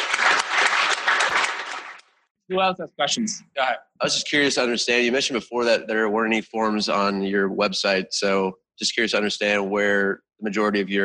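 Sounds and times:
audience applause: 0.0s - 2.0s
speech: 2.5s - 11.0s.

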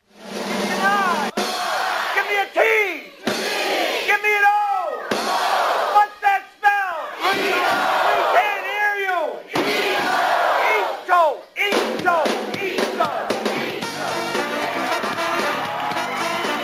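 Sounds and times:
studio audience cheering during a TV comedy bit: 0.7s - 11.1s, 11.7s - 16.6s.

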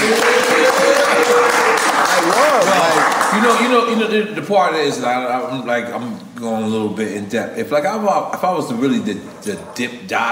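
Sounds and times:
people clapping: 0.0s - 4.1s
speech: 3.3s - 10.3s.

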